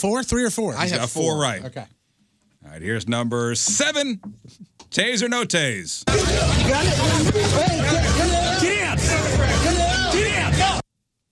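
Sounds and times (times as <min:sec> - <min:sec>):
speech: 0:00.0 - 0:02.0, 0:02.6 - 0:09.8
crowd of people at a street fight: 0:06.1 - 0:10.8.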